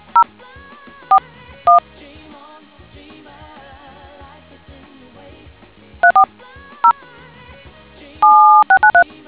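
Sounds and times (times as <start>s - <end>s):
DTMF tones: 6.0s - 6.3s, 8.2s - 9.0s.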